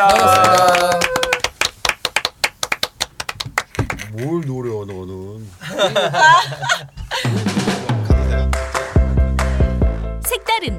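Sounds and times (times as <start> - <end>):
speech: 0.0 - 0.6, 5.8 - 6.8
hand clapping: 0.0 - 5.1, 8.5 - 10.0
laughter: 5.6 - 8.6.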